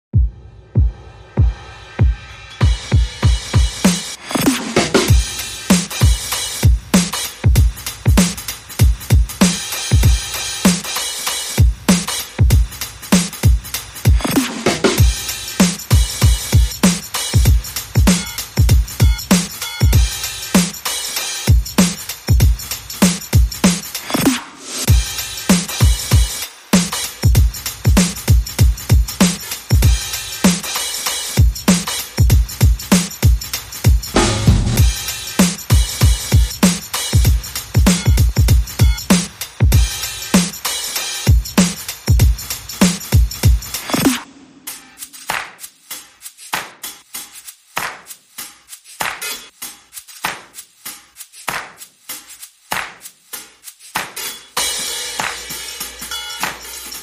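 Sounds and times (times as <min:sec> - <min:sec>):
drums: 0:00.0 - 0:57.0.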